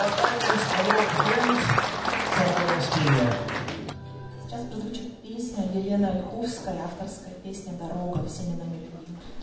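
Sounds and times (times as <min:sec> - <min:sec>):
audience applause: 0:00.0 - 0:04.0
speech: 0:06.4 - 0:08.8.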